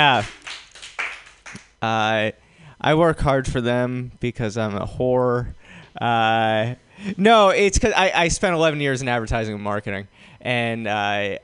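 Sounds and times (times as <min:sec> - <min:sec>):
man speaking loudly: 0:00.0 - 0:00.3, 0:01.8 - 0:11.4
speech: 0:00.0 - 0:00.4, 0:01.8 - 0:11.4
audience clapping: 0:00.0 - 0:01.8.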